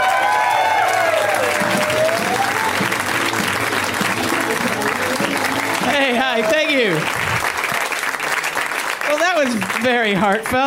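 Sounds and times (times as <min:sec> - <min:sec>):
crowd cheering: 0:00.0 - 0:10.1
audience clapping for a comedian: 0:00.0 - 0:10.6
speech: 0:09.4 - 0:10.6.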